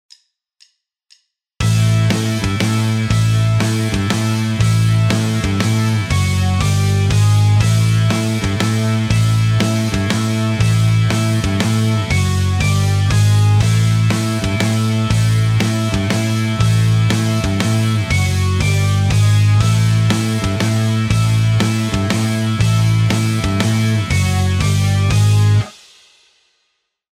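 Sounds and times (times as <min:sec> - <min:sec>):
backing guitar: 0:01.6 - 0:25.7.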